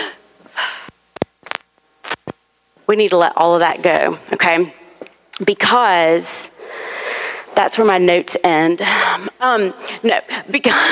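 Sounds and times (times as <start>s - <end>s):
speech: 2.9s - 4.8s, 5.4s - 6.9s, 7.6s - 10.8s
audience taking deep belly breaths: 6.6s - 7.5s.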